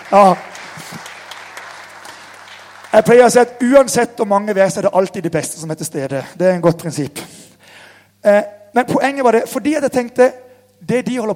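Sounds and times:
audience applause: 0:00.0 - 0:03.4
speech: 0:00.1 - 0:01.0, 0:02.9 - 0:07.4, 0:08.2 - 0:11.3.

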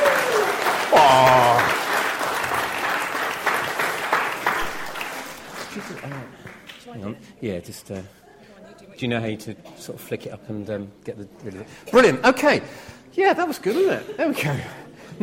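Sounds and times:
audience applause: 0:00.0 - 0:06.8
speech: 0:07.1 - 0:08.2, 0:09.0 - 0:15.2.

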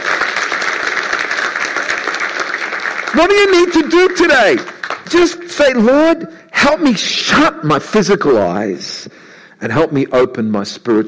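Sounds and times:
crowd clapping hands: 0:00.0 - 0:05.9
speech: 0:03.1 - 0:11.0.

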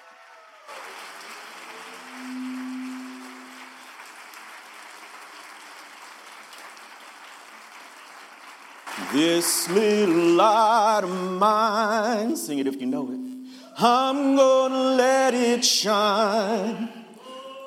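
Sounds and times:
audience applause: 0:00.0 - 0:11.0
speech: 0:09.0 - 0:13.2, 0:13.8 - 0:17.0.

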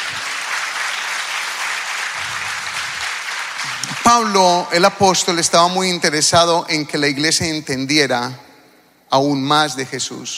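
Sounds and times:
audience applauding: 0:00.0 - 0:04.6
speech: 0:04.1 - 0:08.5, 0:09.1 - 0:10.3.

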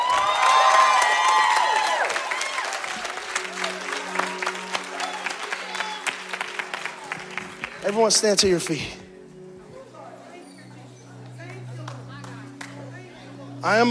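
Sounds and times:
rhythmic clapping: 0:00.0 - 0:08.0, 0:11.2 - 0:13.2
audience cheering in praise: 0:00.0 - 0:08.2
speech: 0:07.9 - 0:09.0, 0:13.7 - 0:13.8.

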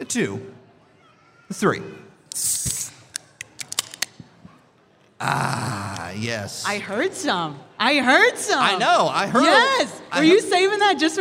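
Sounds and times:
speech: 0:00.1 - 0:00.6, 0:01.5 - 0:02.7, 0:05.2 - 0:11.1
drink can cracked open with a pop and fizz: 0:02.7 - 0:04.2.

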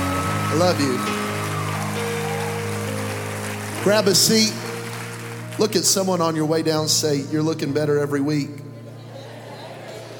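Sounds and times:
audience clapping: 0:00.0 - 0:07.0
speech: 0:00.5 - 0:01.3, 0:03.8 - 0:04.6, 0:05.6 - 0:08.6.

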